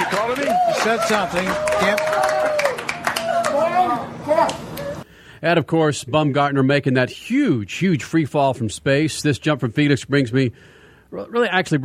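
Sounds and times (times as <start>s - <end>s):
crowd applause: 0.0s - 5.0s
speech: 0.8s - 2.7s, 5.4s - 11.8s.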